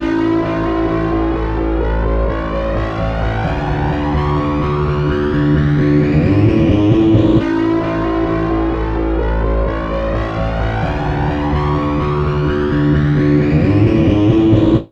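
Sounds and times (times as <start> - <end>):
bass guitar loops: 0.0 - 14.8.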